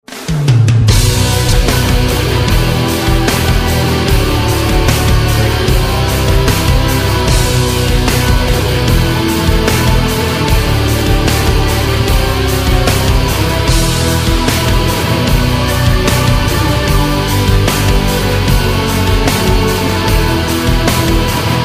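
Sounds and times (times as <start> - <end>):
instrumental music: 0.1 - 21.6.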